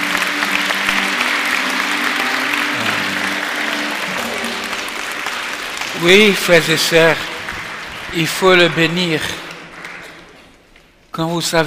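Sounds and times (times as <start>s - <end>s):
church congregation clapping during a French-language service: 0.0s - 11.6s
speech: 6.0s - 7.3s, 8.1s - 9.4s, 11.2s - 11.6s.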